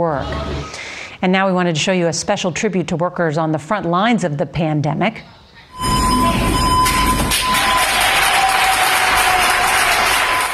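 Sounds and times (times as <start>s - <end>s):
speech: 0.0s - 0.6s, 1.2s - 5.9s
hospital doctors and nurses applauding a cleaning crew: 6.8s - 10.5s.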